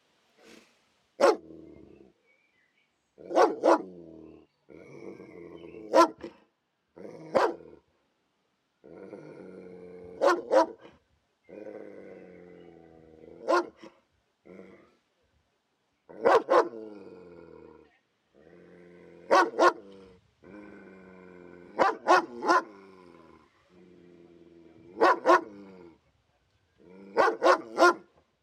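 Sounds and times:
dog barking: 1.2 - 1.4, 3.2 - 3.9, 5.9 - 6.4, 7.3 - 7.6, 10.2 - 10.9, 13.4 - 13.9, 16.2 - 16.8, 19.3 - 19.8, 21.8 - 22.7, 25.0 - 25.6, 27.2 - 28.1.

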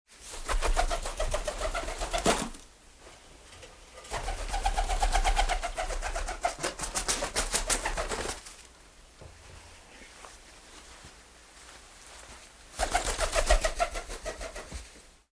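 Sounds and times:
pigeon wings flapping: 0.1 - 2.7, 4.0 - 8.8, 12.8 - 15.0.

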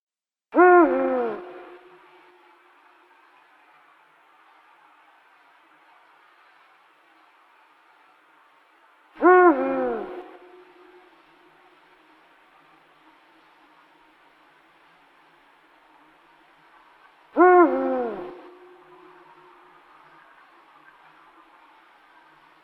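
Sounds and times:
Eurasian eagle-owl hooting: 0.6 - 1.8, 9.2 - 11.0, 17.4 - 19.2.

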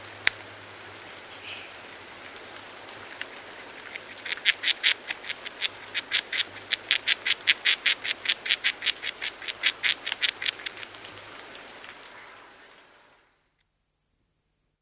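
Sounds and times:
Arizona gray squirrel clicking chucks: 3.1 - 11.9.

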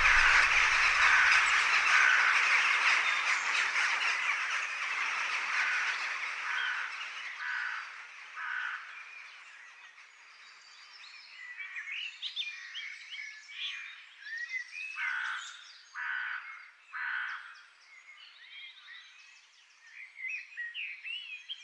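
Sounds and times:
crows cawing: 0.0 - 9.0, 15.0 - 17.6
soft bird chatter: 0.0 - 21.6.

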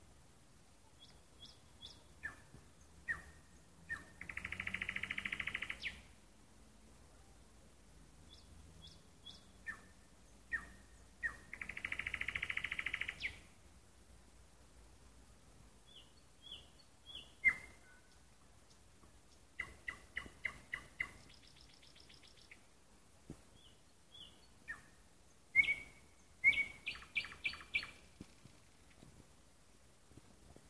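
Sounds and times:
low hiss: 0.0 - 30.6
nightingale singing: 0.9 - 6.2, 8.2 - 13.6, 15.8 - 22.7, 23.5 - 29.1.

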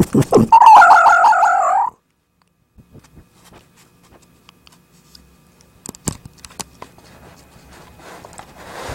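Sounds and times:
fox screaming: 0.2 - 2.0.

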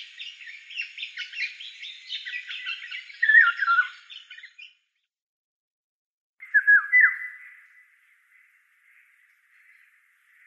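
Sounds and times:
oriole song of slurred whistled phrases: 0.0 - 4.8, 6.4 - 7.8.

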